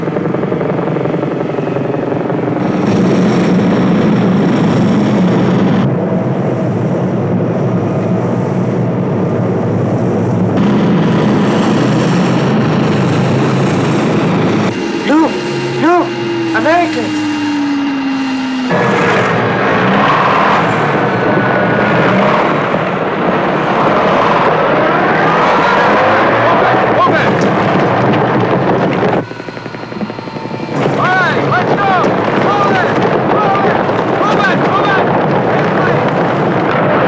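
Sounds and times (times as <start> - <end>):
airplane engines droning on the ground: 0.0 - 37.0
men shouting in Italian: 14.7 - 28.4, 30.1 - 36.1.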